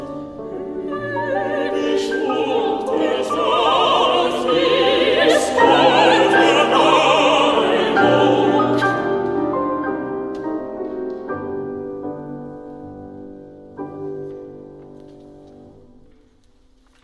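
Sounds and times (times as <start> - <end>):
chorus singing: 0.0 - 10.1.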